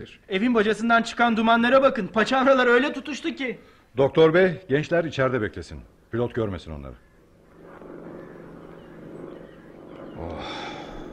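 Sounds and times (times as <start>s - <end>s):
speech: 0.0s - 7.1s
approaching airplane engine: 7.4s - 11.1s.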